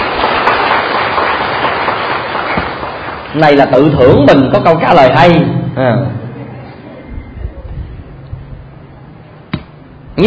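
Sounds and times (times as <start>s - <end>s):
applause: 0.0s - 3.9s
speech: 3.4s - 6.2s.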